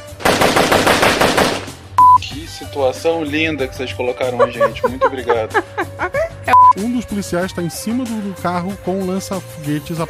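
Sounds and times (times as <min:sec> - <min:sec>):
machine gun firing: 0:00.0 - 0:01.8
speech: 0:02.6 - 0:10.0
laughter: 0:03.9 - 0:06.5, 0:09.8 - 0:10.0.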